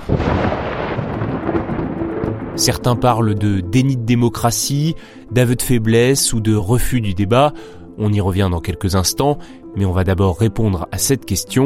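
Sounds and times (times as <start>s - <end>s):
thunder rumbling: 0.0s - 3.8s
speech: 2.6s - 11.6s.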